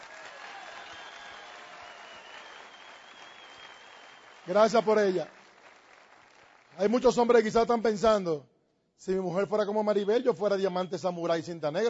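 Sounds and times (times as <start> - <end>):
audience applause: 0.0 - 7.0
speech: 4.5 - 5.4, 6.8 - 11.8.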